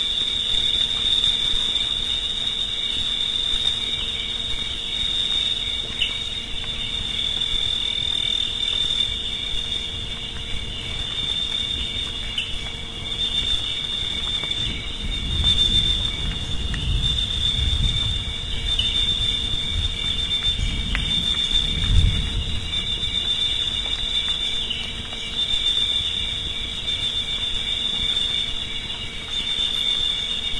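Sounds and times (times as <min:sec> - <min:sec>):
cricket chirping: 0:00.0 - 0:30.5.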